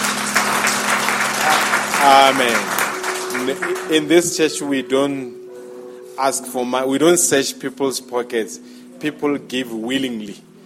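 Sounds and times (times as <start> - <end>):
audience applause: 0.0 - 4.3
speech: 2.0 - 2.7, 3.4 - 5.4, 6.2 - 10.5.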